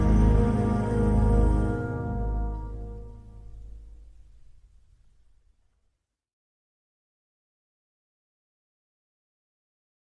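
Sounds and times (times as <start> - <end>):
slowed music with reverb: 0.0 - 4.6.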